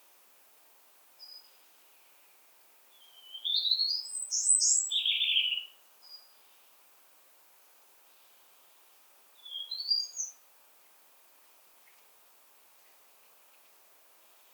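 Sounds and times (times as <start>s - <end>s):
European robin singing: 2.9s - 6.5s, 9.4s - 10.4s.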